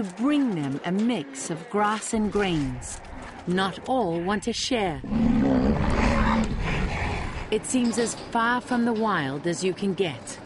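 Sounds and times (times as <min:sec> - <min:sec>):
speech: 0:00.0 - 0:06.0, 0:07.5 - 0:10.4
rhinoceros bellowing at feeding time: 0:04.3 - 0:08.0.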